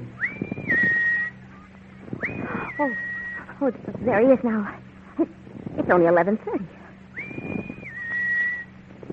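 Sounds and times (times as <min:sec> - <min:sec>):
person whistling: 0:00.2 - 0:01.4, 0:02.2 - 0:03.4, 0:07.2 - 0:08.7
speech: 0:02.8 - 0:06.8.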